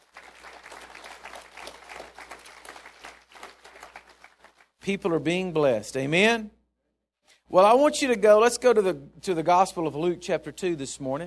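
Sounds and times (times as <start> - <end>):
audience applause: 0.0 - 4.8
speech: 4.9 - 6.6, 7.5 - 11.2.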